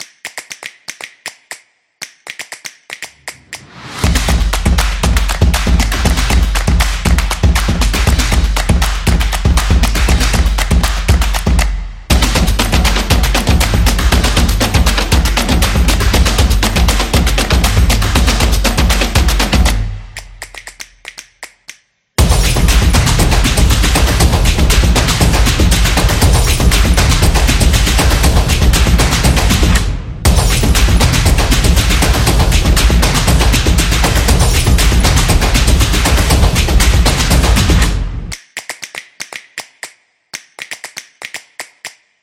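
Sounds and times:
energetic music intro: 3.3 - 20.5, 22.2 - 38.4.

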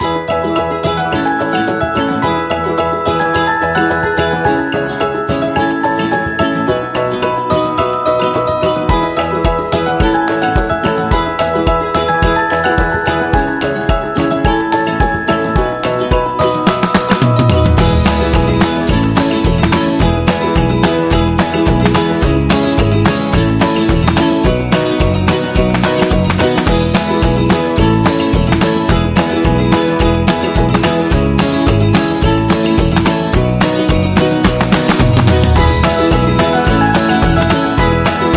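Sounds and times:
upbeat and happy background music: 0.0 - 38.3.

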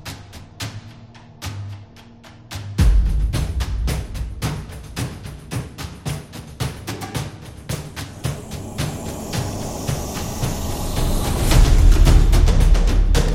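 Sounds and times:
drums and percussion: 0.0 - 13.3.

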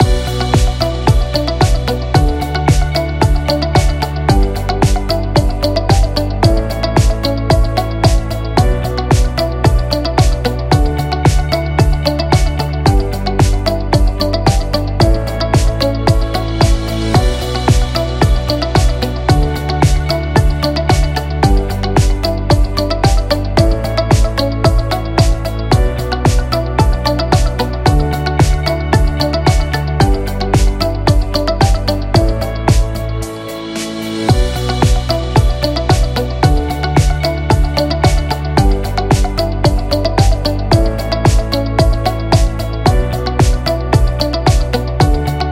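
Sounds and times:
minimal music loop: 0.0 - 45.5.

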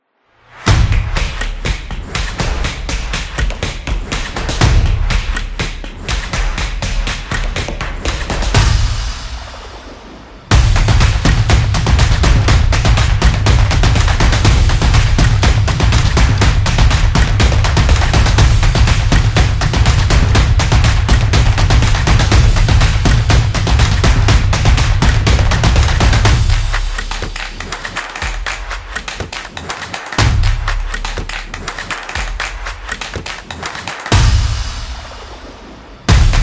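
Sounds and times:
Zumba sport drums: 0.6 - 36.4.

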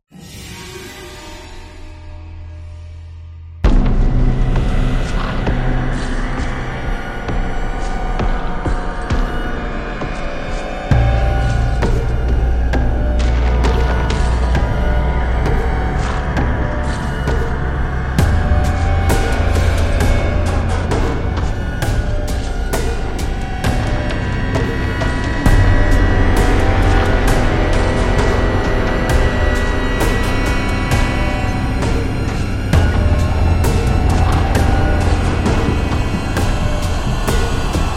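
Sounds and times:
suspenseful horror music: 0.1 - 37.9.

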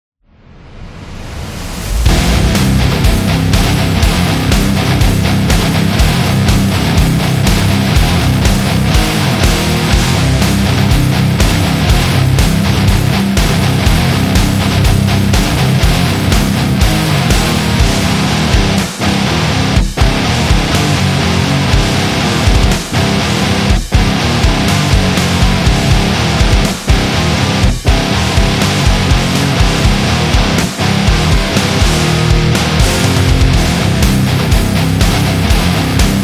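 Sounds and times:
powerful rock music: 1.3 - 36.2.

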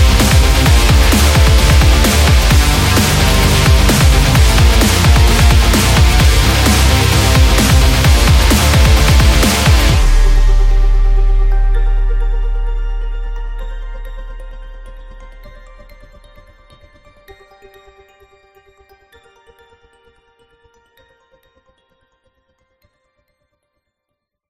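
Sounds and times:
metal music: 0.0 - 17.2.

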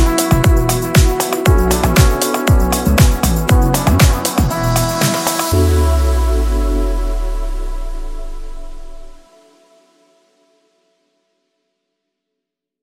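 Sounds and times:
luxury style house background music: 0.0 - 9.2.

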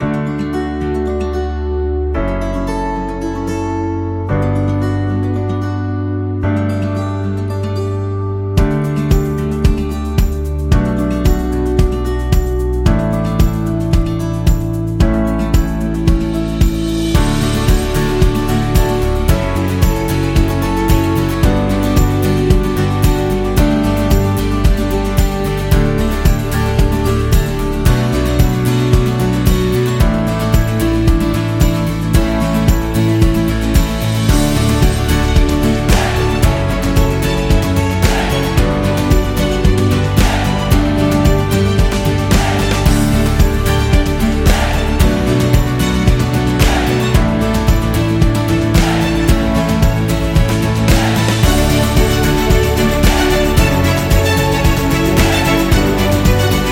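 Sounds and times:
acoustic guitar: 0.0 - 56.7.

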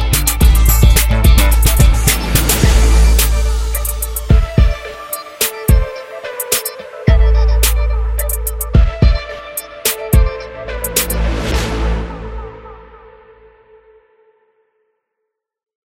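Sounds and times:
intense trap drums: 0.0 - 11.3
epic hip hop beat background music: 0.0 - 13.5.

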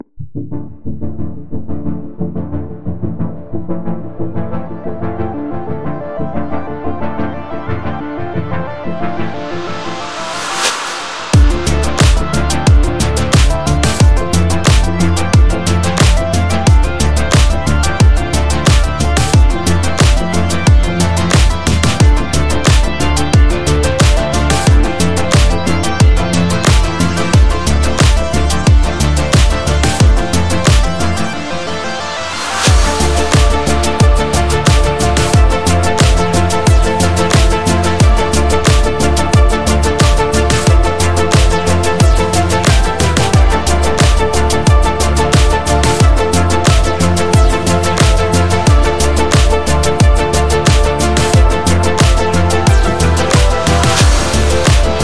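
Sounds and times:
midnight synthwave music: 0.0 - 55.0.

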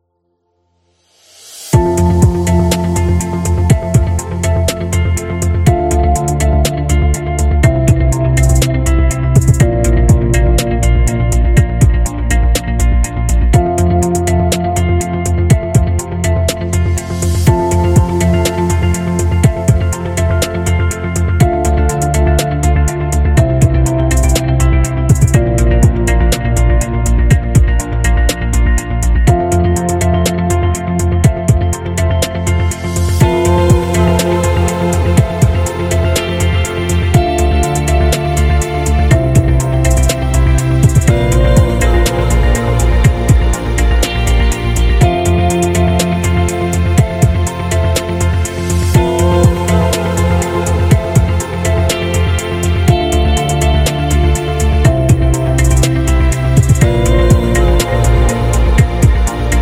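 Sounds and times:
lounge music: 1.6 - 59.6.

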